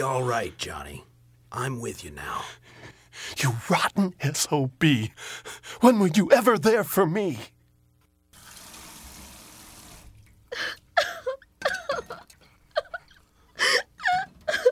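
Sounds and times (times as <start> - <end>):
speech: 0.0 - 7.6
woman crying and sobbing: 10.5 - 14.7.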